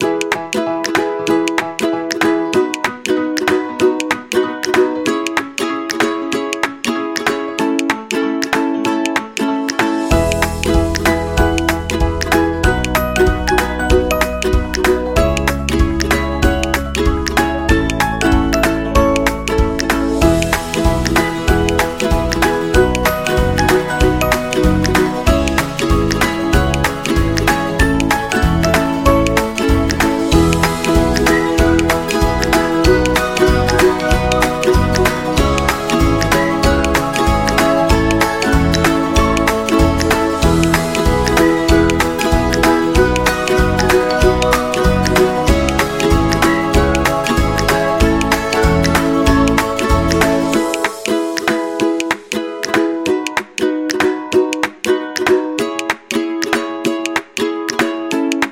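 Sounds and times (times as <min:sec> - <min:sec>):
folk music: 0:00.0 - 0:58.5.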